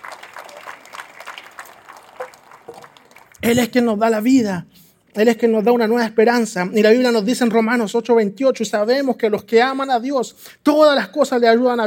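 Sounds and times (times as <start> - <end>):
audience clapping: 0.0 - 3.9
speech: 3.4 - 11.8.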